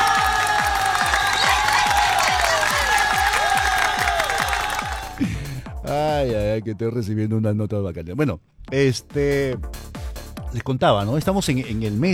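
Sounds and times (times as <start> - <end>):
audience applause: 0.0 - 5.4
speech: 6.6 - 12.1.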